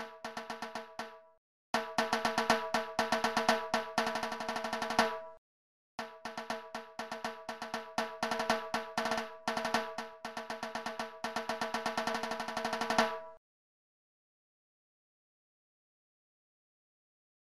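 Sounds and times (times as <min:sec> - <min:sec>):
percussion: 0:00.0 - 0:05.4, 0:06.0 - 0:13.4.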